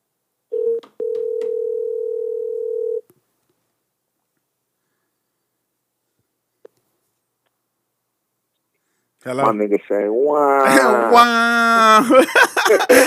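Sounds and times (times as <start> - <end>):
telephone tones while a call is placed: 0.5 - 3.0
speech: 9.2 - 13.0
laughter: 11.8 - 13.0.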